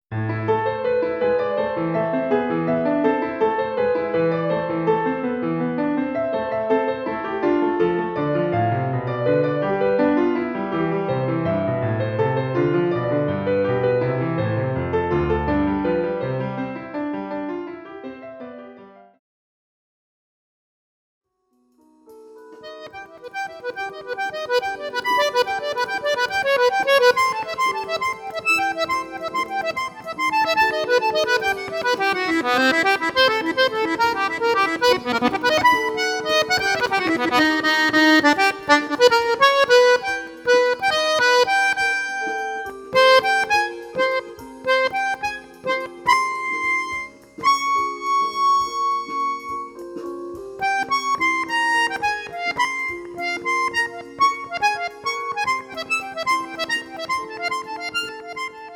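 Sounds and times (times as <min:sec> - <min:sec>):
instrumental music: 0:00.1 - 0:19.2, 0:21.5 - 0:58.7.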